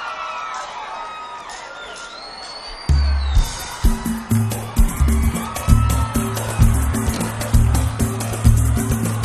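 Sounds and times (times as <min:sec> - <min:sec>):
samba music: 0:02.8 - 0:09.2.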